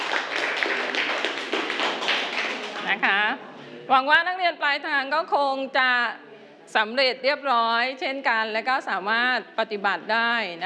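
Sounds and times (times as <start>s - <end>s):
students clapping for themselves at the end of a lesson: 0.0s - 3.0s
speech: 2.9s - 10.6s.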